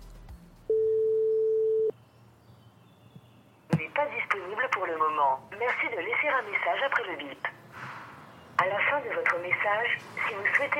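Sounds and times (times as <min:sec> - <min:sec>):
telephone busy line tone: 0:00.7 - 0:01.9
speech: 0:04.9 - 0:07.6, 0:08.6 - 0:10.7.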